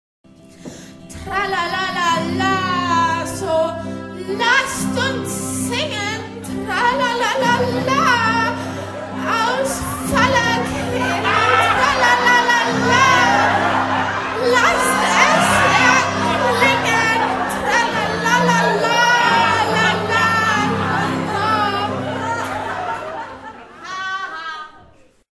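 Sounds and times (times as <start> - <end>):
person singing: 1.1 - 23.3
laughter: 4.5 - 25.2.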